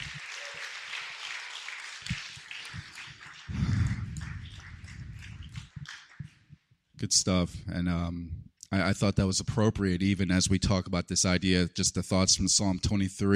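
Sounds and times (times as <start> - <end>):
crowd clapping: 0.0 - 6.4
low thumps: 3.5 - 5.8
speech: 7.0 - 13.3.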